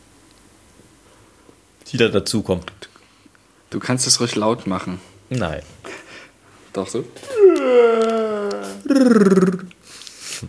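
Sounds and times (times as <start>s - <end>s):
speech: 1.9s - 2.9s, 3.7s - 5.8s, 6.8s - 8.2s, 8.9s - 9.8s
person yawning with rolled R: 7.2s - 9.8s.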